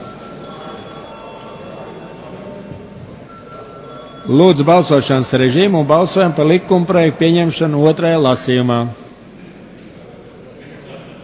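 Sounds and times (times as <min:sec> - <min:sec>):
parliament bell rung before a vote: 0:00.0 - 0:02.7, 0:03.3 - 0:05.4
speech: 0:04.2 - 0:09.0.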